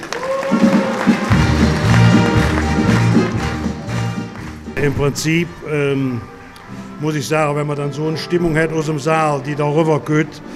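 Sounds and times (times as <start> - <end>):
crowd applauding: 0.0 - 4.8
speech: 4.8 - 6.4, 7.0 - 10.5.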